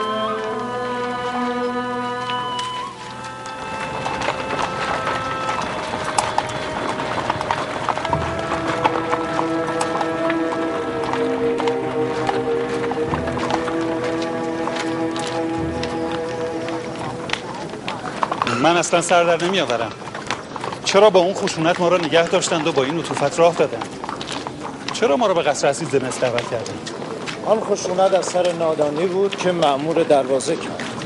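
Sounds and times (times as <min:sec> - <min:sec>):
sustained tonal background: 0:00.0 - 0:20.2
horses' hooves clip-clopping as they are led to a stable: 0:00.0 - 0:31.0
speech: 0:18.8 - 0:20.0, 0:20.9 - 0:24.0, 0:25.0 - 0:30.8.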